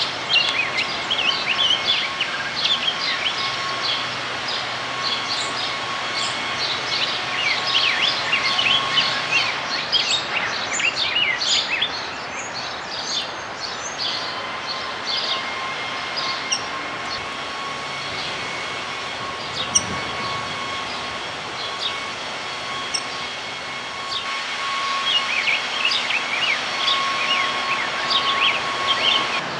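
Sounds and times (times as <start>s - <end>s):
Rose-breasted Grosbeak singing: 0.0s - 29.4s.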